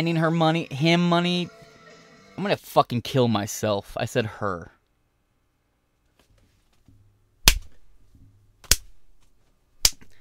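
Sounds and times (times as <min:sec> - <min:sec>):
speech: 0:00.0 - 0:01.6, 0:02.4 - 0:04.8
hand slapping own wrist: 0:07.5 - 0:07.8, 0:08.6 - 0:10.1.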